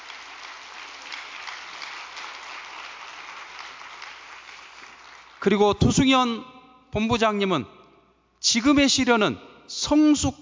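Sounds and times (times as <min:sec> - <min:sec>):
audience applause: 0:00.0 - 0:05.4
speech: 0:05.4 - 0:07.8, 0:08.4 - 0:10.3.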